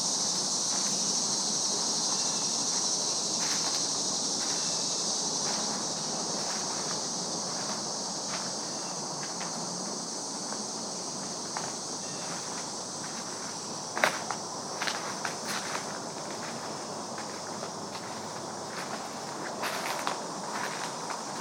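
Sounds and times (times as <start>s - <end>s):
steady bright insect hiss in the woods at early evening: 0.0s - 21.3s
light crunching footsteps in the woods: 2.1s - 21.3s.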